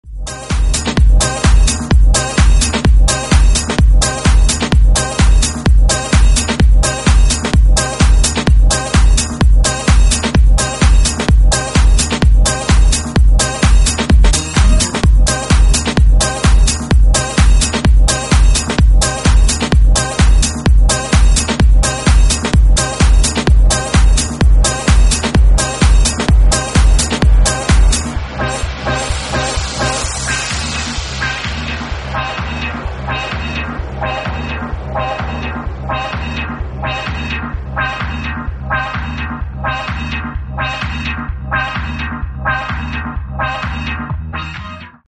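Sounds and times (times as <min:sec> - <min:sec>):
disco groove: 0:00.1 - 0:44.9.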